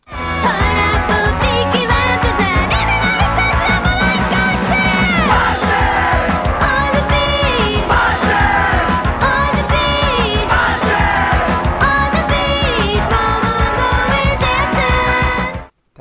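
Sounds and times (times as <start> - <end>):
band song: 0.1 - 15.7.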